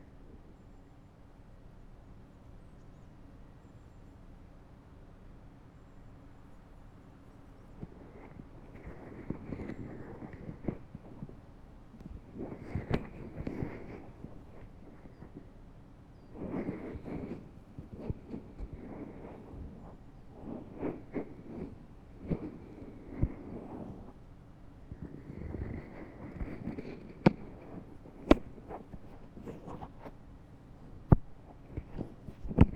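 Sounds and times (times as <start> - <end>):
left ear massage rubbing: 7.8 - 11.4, 12.0 - 15.6, 16.2 - 24.2, 24.9 - 30.3, 30.9 - 32.7
ear cleaning with ear pick: 12.0 - 15.5, 16.3 - 24.2, 25.0 - 30.2, 31.0 - 32.7.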